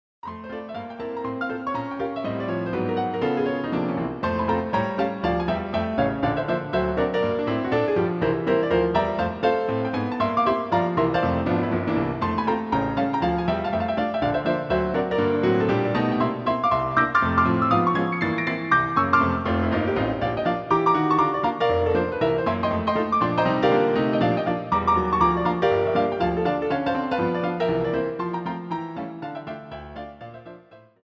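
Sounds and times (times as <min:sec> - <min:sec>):
polka music: 0:01.1 - 0:30.1.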